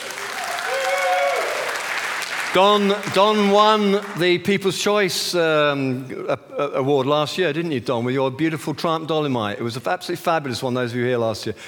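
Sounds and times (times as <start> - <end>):
audience applause: 0.0 - 4.4
speech: 2.5 - 11.6.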